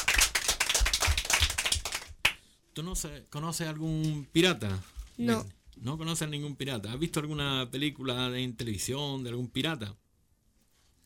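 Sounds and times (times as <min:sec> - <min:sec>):
small group applauding a child: 0:00.0 - 0:02.5
speech: 0:02.8 - 0:10.0.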